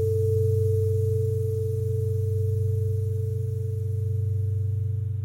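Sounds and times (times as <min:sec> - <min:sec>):
long bell threads: 0:00.0 - 0:05.1.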